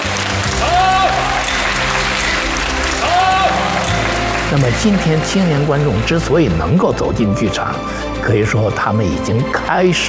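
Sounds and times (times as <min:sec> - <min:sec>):
theatre audience applause: 0:00.0 - 0:06.9
speech: 0:04.5 - 0:10.0.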